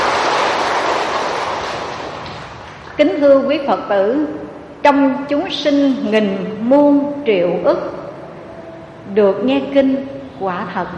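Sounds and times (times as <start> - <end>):
round of applause: 0.0 - 3.0
speech: 3.0 - 8.0, 9.1 - 10.9.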